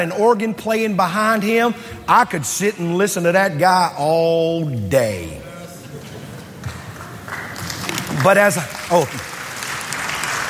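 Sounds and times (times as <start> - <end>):
speech: 0.0 - 5.4, 8.2 - 9.3
audience clapping: 6.6 - 10.4.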